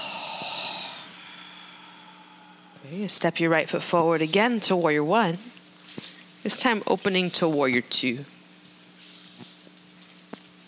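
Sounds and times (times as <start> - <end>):
deep breath exhaled through the mouth during a yoga flow: 0.0 - 2.8
speech: 2.8 - 8.4.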